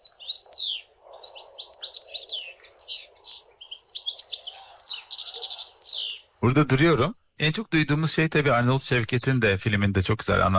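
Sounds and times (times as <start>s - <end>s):
European goldfinch singing: 0.0s - 6.3s
speech: 6.4s - 10.5s.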